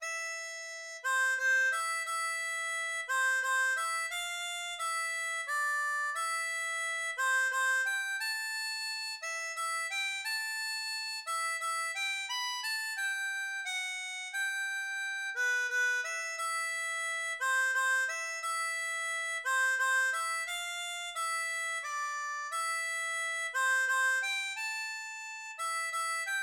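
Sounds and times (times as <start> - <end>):
waltz on harmonica: 0.0 - 26.4.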